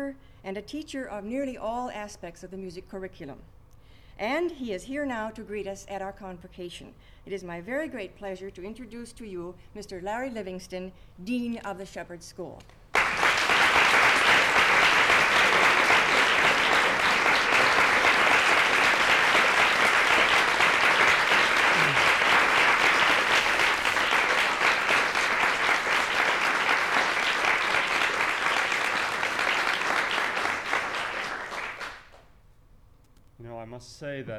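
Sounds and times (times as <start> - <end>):
speech: 0.0 - 3.6, 4.2 - 12.8
audience applause: 12.9 - 32.2.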